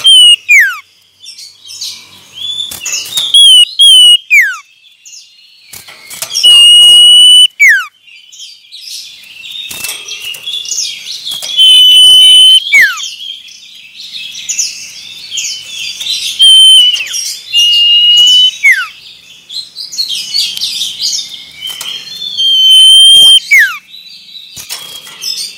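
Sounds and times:
common iora song: 0.0 - 0.8, 2.4 - 4.7, 5.7 - 8.0, 9.6 - 13.2, 14.4 - 19.0, 19.9 - 23.9.

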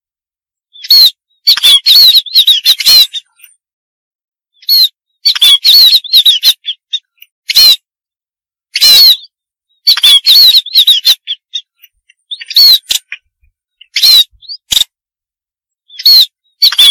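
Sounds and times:
munia harsh buzzy calls and thin wavering whistles: 0.7 - 3.5, 4.6 - 7.9, 8.7 - 14.9, 15.9 - 16.8.

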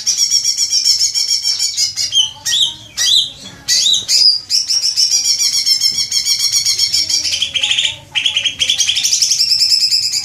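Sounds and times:
leafbird song: 0.0 - 10.2.

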